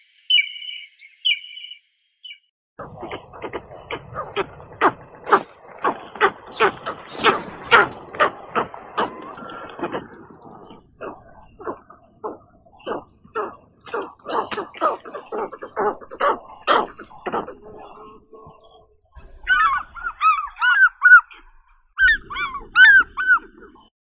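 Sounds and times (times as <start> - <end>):
Aquila rapax eagle: 2.8 - 23.9.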